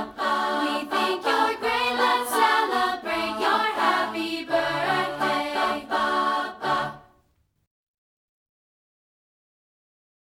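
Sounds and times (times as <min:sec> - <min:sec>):
people singing a cappella: 0:00.0 - 0:07.2.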